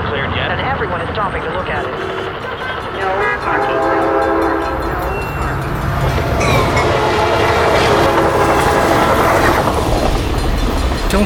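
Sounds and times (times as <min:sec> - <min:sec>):
passenger train rumbling past: 0:00.0 - 0:11.2
passenger train horn blast: 0:01.7 - 0:09.7.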